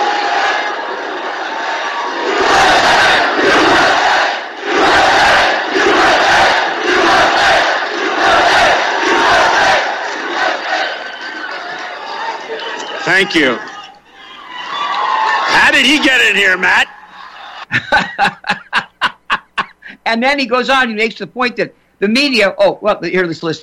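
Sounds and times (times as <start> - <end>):
crowd booing a protester at rally: 0.0 - 17.7
laughter: 10.3 - 20.0
speech: 13.2 - 13.7, 15.8 - 16.8, 17.7 - 18.6, 20.1 - 23.6.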